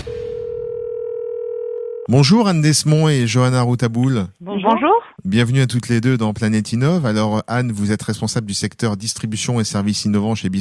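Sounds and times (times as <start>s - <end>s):
telephone dial tone: 0.0s - 2.1s
speech: 2.1s - 10.5s.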